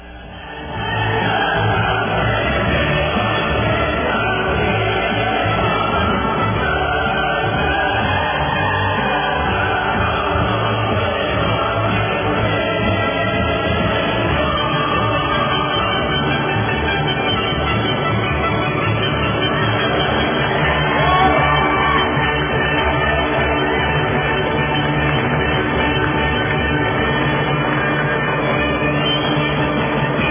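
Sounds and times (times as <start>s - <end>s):
large crowd applause and cheering: 0.0s - 30.3s
crowd shouts and whoops: 19.5s - 25.4s.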